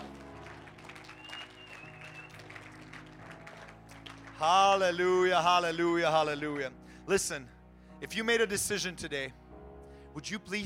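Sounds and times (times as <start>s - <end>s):
audience clapping: 0.0s - 5.0s
speech: 4.4s - 9.4s, 10.2s - 10.6s.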